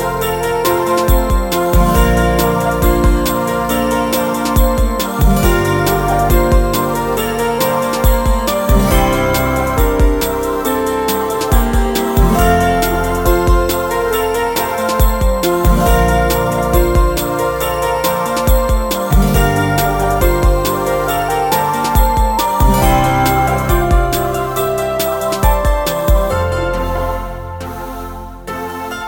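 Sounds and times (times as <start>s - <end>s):
bells ringing: 0.0s - 27.6s.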